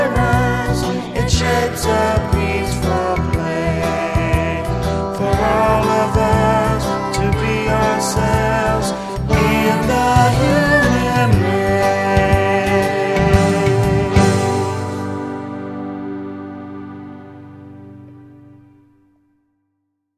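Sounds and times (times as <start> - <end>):
vocals: 0.0 - 15.6.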